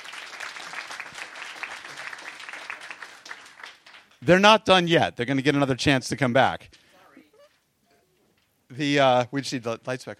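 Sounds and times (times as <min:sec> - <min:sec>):
crowd clapping: 0:00.0 - 0:04.3
speech: 0:04.2 - 0:06.7, 0:08.8 - 0:10.1.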